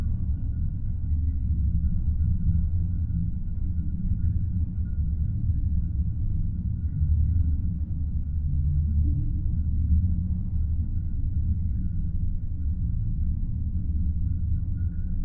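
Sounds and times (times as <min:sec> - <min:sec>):
low underwater ambience: 0:00.0 - 0:15.2.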